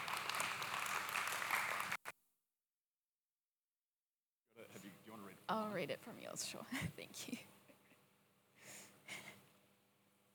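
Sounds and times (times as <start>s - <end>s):
audience applause for a volunteer: 0.0s - 2.0s
speech: 5.5s - 7.6s.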